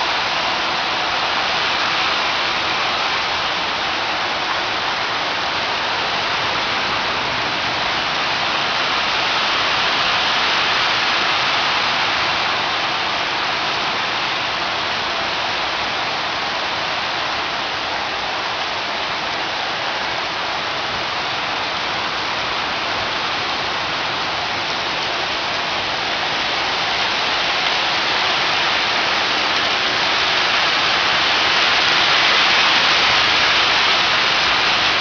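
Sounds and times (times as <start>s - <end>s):
heavy rain: 0.0s - 34.9s.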